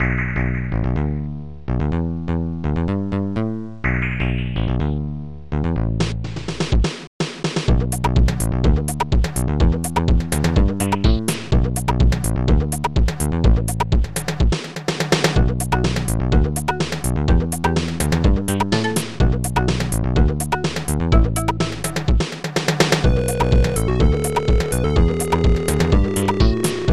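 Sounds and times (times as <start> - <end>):
fin music: 0.0 - 26.9.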